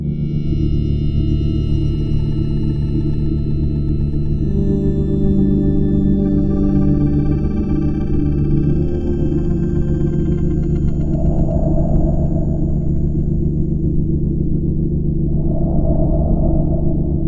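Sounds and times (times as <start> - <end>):
sci-fi horror sound: 0.1 - 17.2.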